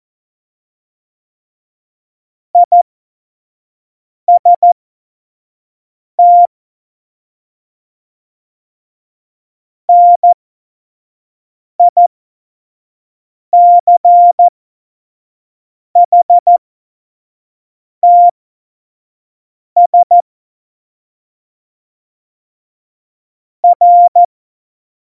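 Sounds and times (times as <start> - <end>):
Morse code beeps for a Morse course: 2.6 - 2.8, 4.3 - 4.8, 6.2 - 6.5, 9.9 - 10.4, 11.8 - 12.0, 13.6 - 14.5, 16.0 - 16.6, 18.0 - 18.3, 19.8 - 20.2, 23.6 - 24.3.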